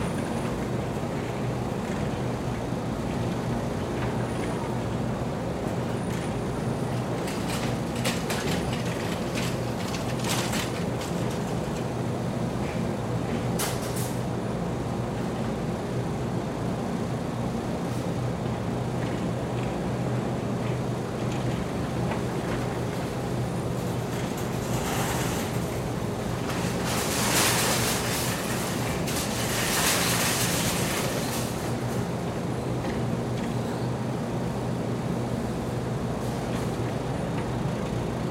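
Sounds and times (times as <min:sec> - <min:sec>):
vending machines at a store entrance: 0:00.0 - 0:38.2
shopping carts at a store entrance: 0:07.3 - 0:11.8, 0:23.8 - 0:32.2.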